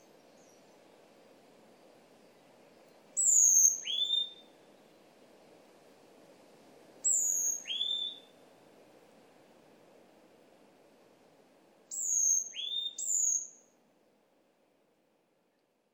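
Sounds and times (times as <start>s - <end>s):
varied tit whistled calls: 3.2s - 4.5s, 7.0s - 8.3s, 11.9s - 13.6s.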